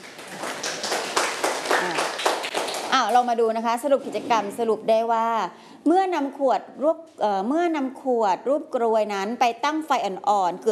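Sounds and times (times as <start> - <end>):
children clapping hands in an indoor room: 0.0 - 3.3
speech: 3.0 - 10.7.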